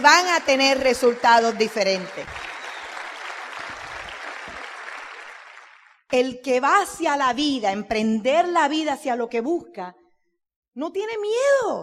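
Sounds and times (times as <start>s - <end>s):
speech: 0.0s - 2.5s, 6.1s - 10.0s, 10.8s - 11.8s
crowd applause: 0.0s - 6.0s.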